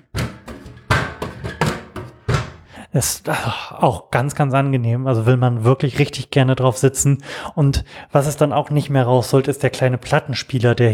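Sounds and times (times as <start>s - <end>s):
rusty metal chair knocked and handled, clanking: 0.0s - 2.7s
speech: 2.9s - 10.9s.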